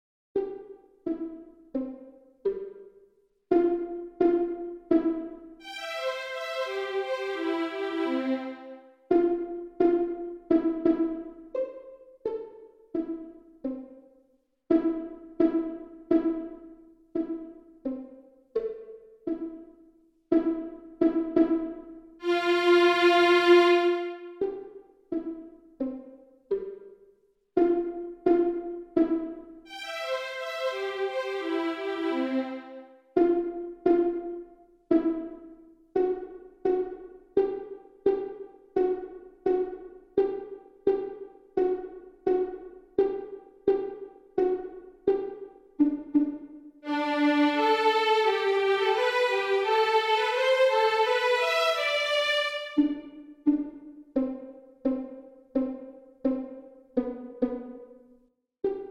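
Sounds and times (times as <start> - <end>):
violin pony trot rhythm: 0.4 - 2.9, 3.5 - 13.9, 14.7 - 19.7, 20.3 - 26.8, 27.6 - 35.4, 36.0 - 57.9, 58.6 - 58.8.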